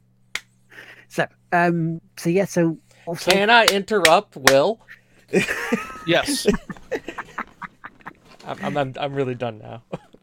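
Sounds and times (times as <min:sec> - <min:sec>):
hands clapping: 0:00.3 - 0:00.5, 0:03.2 - 0:04.7
speech: 0:01.1 - 0:06.7, 0:08.5 - 0:10.0
laughter: 0:05.3 - 0:09.0.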